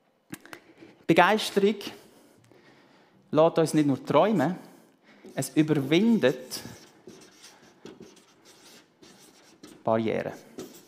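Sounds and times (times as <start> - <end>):
speech: 1.1 - 2.0, 3.3 - 4.7, 5.4 - 6.8, 9.9 - 10.5
pen or marker handwriting on a writing surface: 5.3 - 10.8.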